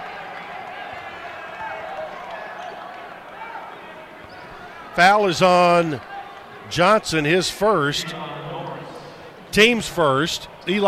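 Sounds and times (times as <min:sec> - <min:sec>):
crowd booing in a Bronx cheer: 0:00.0 - 0:09.5
speech: 0:05.0 - 0:06.1, 0:06.7 - 0:08.3, 0:09.5 - 0:10.8.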